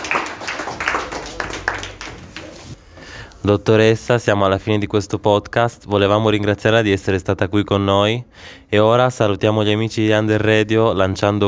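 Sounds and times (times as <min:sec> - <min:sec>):
applause: 0:00.0 - 0:02.8
speech: 0:03.4 - 0:11.4.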